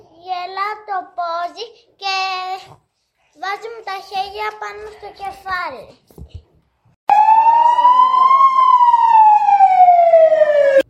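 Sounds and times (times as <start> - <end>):
speech: 3.5 - 6.1
fire alarm siren: 7.1 - 10.8.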